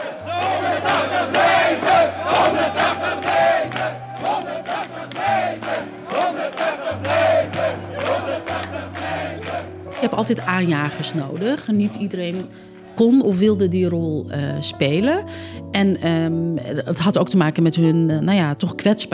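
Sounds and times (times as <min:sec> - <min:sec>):
crowd of Moroccan activists cheering and chanting after winning residence permits: 0:00.0 - 0:13.5
speech: 0:10.0 - 0:19.1.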